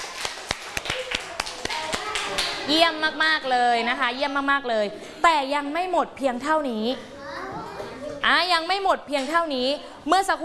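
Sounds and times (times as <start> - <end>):
children clapping their hands: 0.0 - 2.7
speech: 2.7 - 7.1, 8.2 - 10.4.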